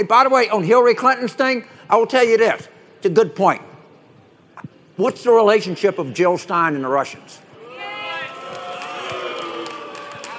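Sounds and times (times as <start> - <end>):
speech: 0.0 - 3.7, 5.0 - 7.4
crowd booing: 7.6 - 10.3.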